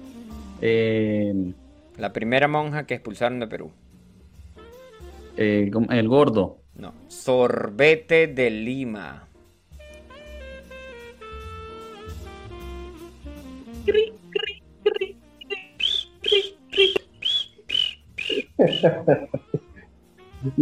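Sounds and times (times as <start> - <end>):
speech: 0.6 - 3.8, 5.4 - 9.3, 13.8 - 14.0, 18.6 - 19.5, 20.4 - 20.6
person imitating crickets chirping: 13.9 - 19.2
laughter: 18.3 - 19.8.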